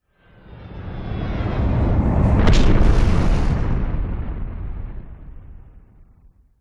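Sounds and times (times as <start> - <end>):
designed airplane jet crash explosion: 1.8 - 6.3.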